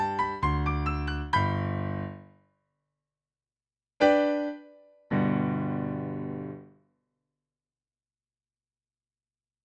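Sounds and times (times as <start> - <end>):
piano: 0.0 - 2.6, 4.0 - 6.9.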